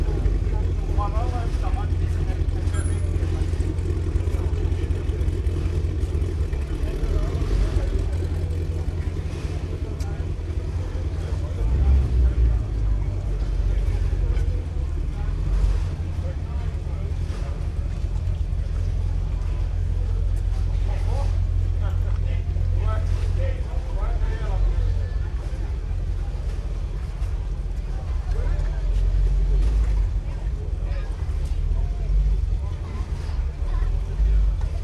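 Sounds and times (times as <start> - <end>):
motor launches, sail- and speedboats at Nagu Strandvagen: 0.0 - 34.8.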